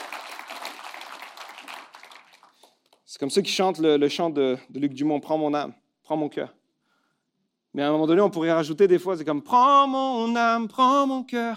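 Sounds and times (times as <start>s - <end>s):
audience applause: 0.0s - 2.8s
speech: 3.1s - 6.6s, 7.7s - 11.5s.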